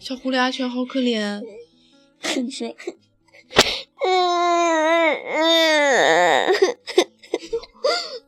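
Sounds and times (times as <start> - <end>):
speech: 0.0 - 1.6, 2.2 - 7.1
child crying: 4.0 - 7.1.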